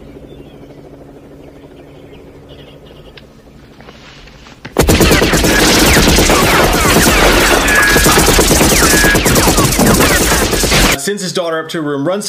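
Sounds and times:
movie gunfire from action scene: 4.8 - 11.0
speech: 11.2 - 12.2.

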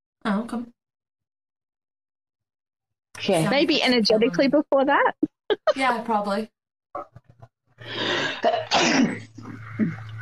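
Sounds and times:
speech: 0.2 - 0.8, 3.2 - 7.2, 7.8 - 10.1
voice imitating a sneeze: 8.5 - 9.3.

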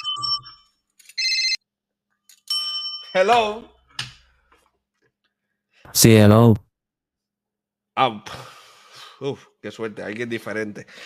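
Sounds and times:
mobile phone ringtone for an incoming call: 0.0 - 1.6
speech: 3.1 - 3.8, 5.9 - 6.6, 8.0 - 8.5, 9.2 - 11.0.

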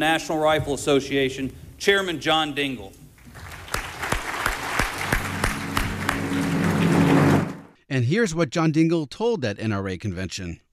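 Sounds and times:
speech: 0.0 - 3.0, 7.9 - 10.6
audience applause: 3.3 - 7.7.

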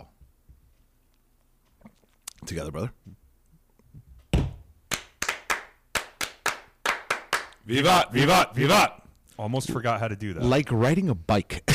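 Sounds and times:
speech: 2.5 - 3.2, 7.7 - 11.7
group clapping in unison: 4.9 - 7.6.

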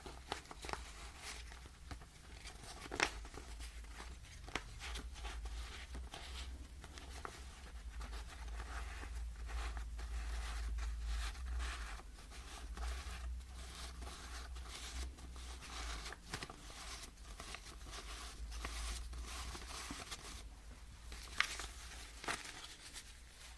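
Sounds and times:
cash being sorted and counted: 0.0 - 23.5.

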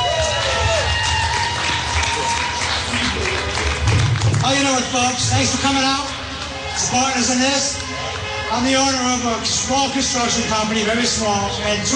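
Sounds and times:
crowd cheers and whoops: 0.0 - 3.2
crowd applauding: 0.0 - 11.0
speech: 4.5 - 6.2, 6.8 - 7.8, 8.5 - 11.9.

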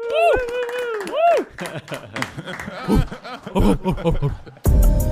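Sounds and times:
hands clapping: 0.0 - 3.8
laughter: 0.2 - 4.7
speech: 1.6 - 5.0.

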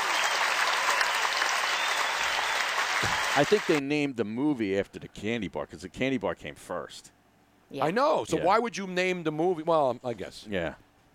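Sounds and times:
roaring round of applause: 0.0 - 3.8
speech: 3.0 - 11.1.

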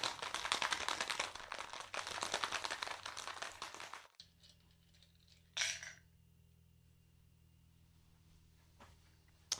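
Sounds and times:
ice rattling in a cocktail shaker: 0.0 - 4.2
low hum: 4.2 - 9.5.

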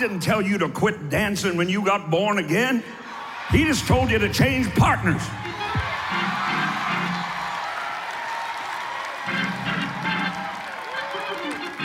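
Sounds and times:
speech: 0.0 - 5.5
polite crowd clapping: 5.3 - 11.8.

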